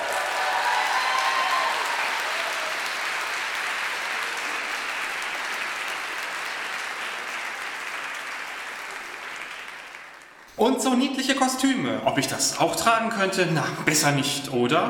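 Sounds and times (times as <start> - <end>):
audience applause: 0.0 - 10.6
speech: 10.6 - 14.8.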